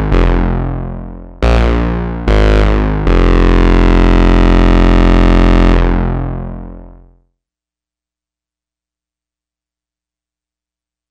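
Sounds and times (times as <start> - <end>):
powerbass synth bass: 0.0 - 7.2.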